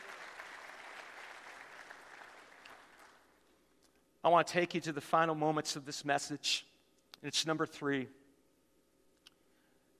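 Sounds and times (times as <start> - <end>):
audience clapping: 0.0 - 3.5
speech: 4.2 - 8.2.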